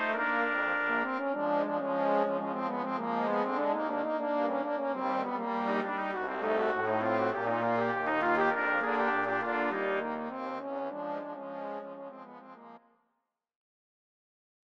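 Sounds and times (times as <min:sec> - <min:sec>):
brass quintet playing rag: 0:00.0 - 0:11.5.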